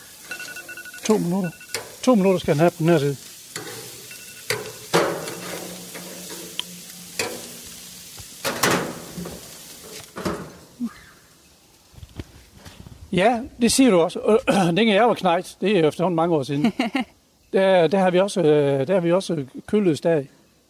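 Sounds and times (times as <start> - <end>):
food sizzling in a frying pan: 0.0 - 13.2
utensils clattering and scraping against a frying pan: 0.2 - 2.7, 3.5 - 7.7, 8.4 - 10.6
speech: 1.1 - 3.2, 13.2 - 20.4
laughter: 16.6 - 17.1.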